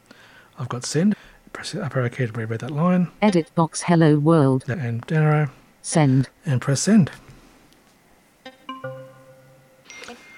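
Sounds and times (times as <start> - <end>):
speech: 0.6 - 7.2
iPhone incoming text message alert chime: 8.7 - 10.3.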